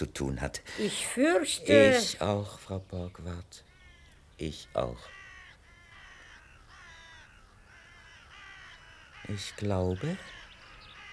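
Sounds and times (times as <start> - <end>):
speech: 0.0 - 3.7, 4.4 - 5.2, 9.3 - 10.4
ravens cawing: 3.6 - 11.1.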